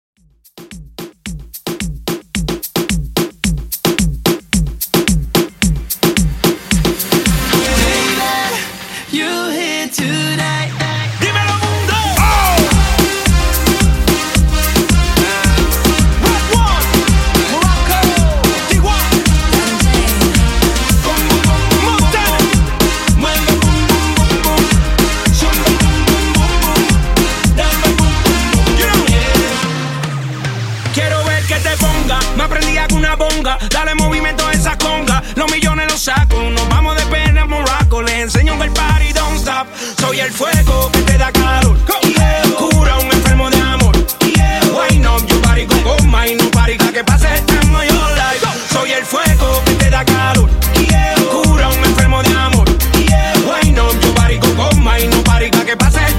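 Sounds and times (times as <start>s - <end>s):
reggaeton mixshow: 0.2s - 56.1s.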